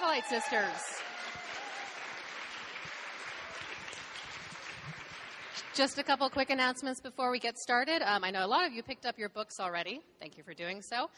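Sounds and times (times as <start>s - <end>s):
audience applause: 0.0s - 5.8s
speech: 0.2s - 1.4s, 5.8s - 11.1s.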